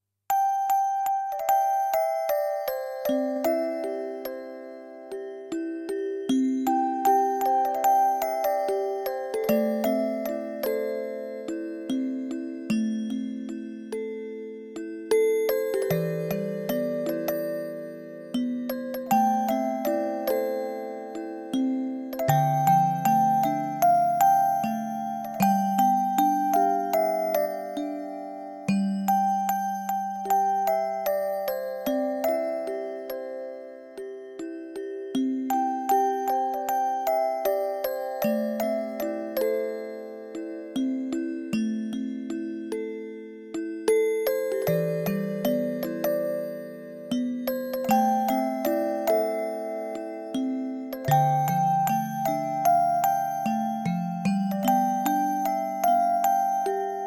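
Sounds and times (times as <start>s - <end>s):
music box: 0.3s - 57.0s.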